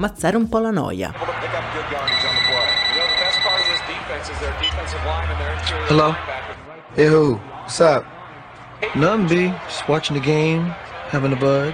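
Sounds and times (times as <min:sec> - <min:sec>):
speech: 0:00.0 - 0:02.2, 0:04.2 - 0:08.2, 0:08.8 - 0:11.7
crowd murmur: 0:01.2 - 0:11.7
telephone ringing: 0:02.0 - 0:04.8
low rumble: 0:04.0 - 0:06.7.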